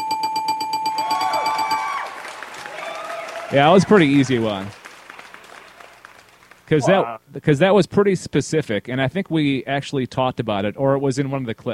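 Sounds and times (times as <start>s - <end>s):
dinging bell sound effect: 0.0s - 2.0s
speech: 3.5s - 4.8s, 6.7s - 11.7s.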